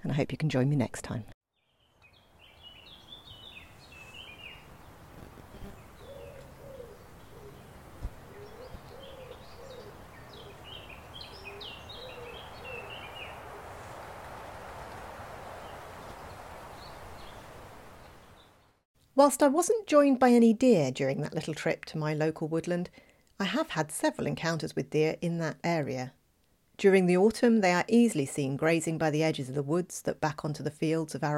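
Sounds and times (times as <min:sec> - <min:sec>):
speech: 0:00.1 - 0:01.4, 0:19.2 - 0:26.2, 0:26.8 - 0:31.3
woodland birds chirping and twittering: 0:01.6 - 0:18.8
soft rushing woodland background: 0:02.3 - 0:18.8
low repeated hooting or cooing calls: 0:03.1 - 0:17.6.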